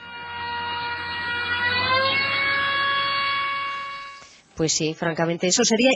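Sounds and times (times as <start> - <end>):
passing car horn played backwards: 0.0 - 4.6
speech: 4.6 - 5.9.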